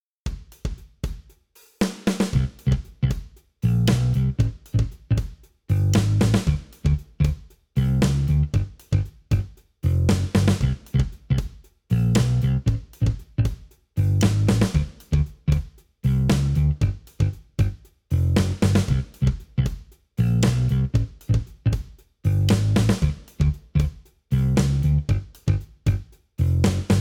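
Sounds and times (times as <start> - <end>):
bass drum: 2.3 - 26.9.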